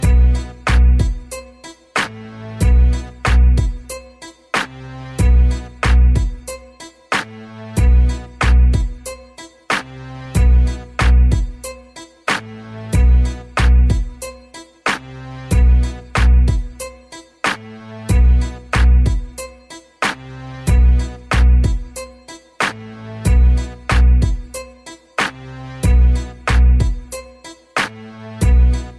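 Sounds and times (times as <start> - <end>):
hip hop music: 0.0 - 28.9.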